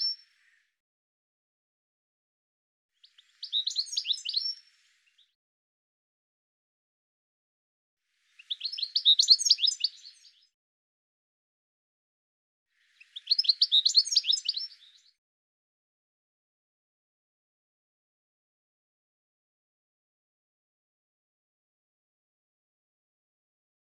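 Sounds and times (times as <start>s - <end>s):
bird song with rapid high twittering notes: 3.1s - 4.6s, 8.4s - 10.3s, 13.0s - 15.0s.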